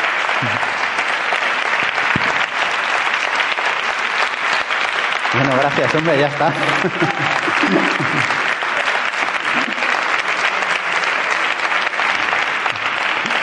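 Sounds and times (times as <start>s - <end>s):
audience applause: 0.0s - 13.4s
speech: 0.4s - 0.7s, 5.4s - 8.5s
laughter: 5.4s - 10.9s.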